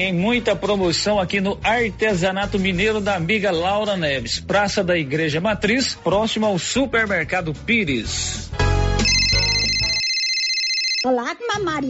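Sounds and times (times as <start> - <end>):
speech: 0.0 - 8.7, 11.0 - 11.8
electronic telephone ringtone in a radio advert for a market: 9.0 - 11.1.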